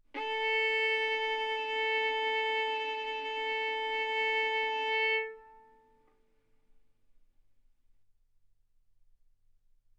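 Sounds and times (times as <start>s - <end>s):
violin arco on A string: 0.1s - 6.0s.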